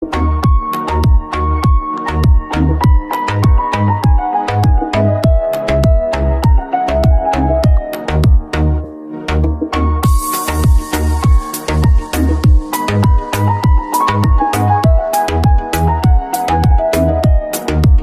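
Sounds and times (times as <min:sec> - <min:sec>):
piano remix: 0:00.0 - 0:18.0.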